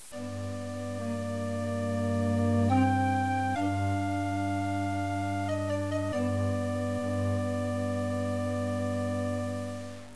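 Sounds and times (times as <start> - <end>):
theme music: 0.2 - 10.1.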